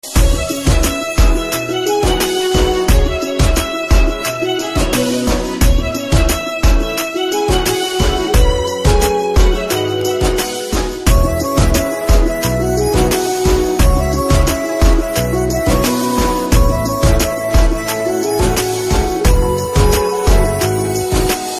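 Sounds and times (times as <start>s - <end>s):
background music ringtone: 0.0s - 21.5s.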